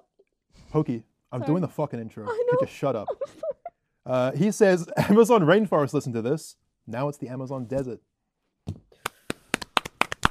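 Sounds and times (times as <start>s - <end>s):
speech: 0.7s - 8.1s
people clapping: 9.0s - 10.3s.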